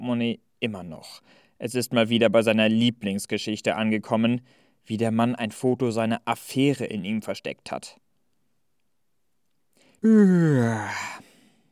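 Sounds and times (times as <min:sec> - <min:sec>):
speech: 0:00.0 - 0:08.0, 0:10.0 - 0:11.3
person yawning: 0:10.0 - 0:11.5.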